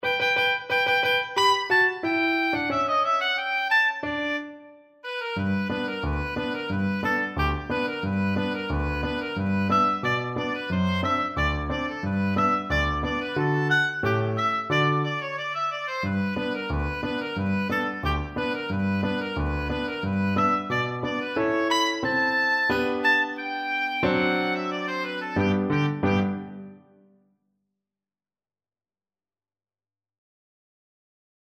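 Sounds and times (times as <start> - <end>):
oboe playing a march: 0.0 - 26.8.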